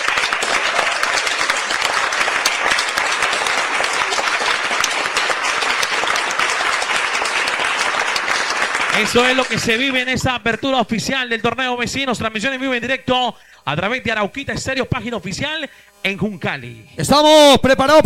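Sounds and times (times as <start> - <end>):
crowd applause welcoming a team: 0.0 - 10.2
speech: 9.0 - 18.0.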